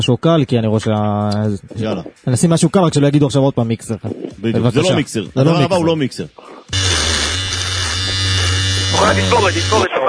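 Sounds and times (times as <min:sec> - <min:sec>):
speech: 0:00.0 - 0:06.9, 0:09.0 - 0:10.0
electric hair clipper buzzing: 0:06.7 - 0:09.9.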